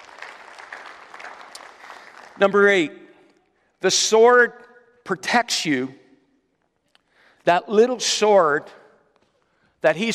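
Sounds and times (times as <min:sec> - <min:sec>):
crowd clapping: 0:00.0 - 0:02.9
speech: 0:02.4 - 0:03.0, 0:03.8 - 0:06.0, 0:07.4 - 0:08.8, 0:09.8 - 0:10.1.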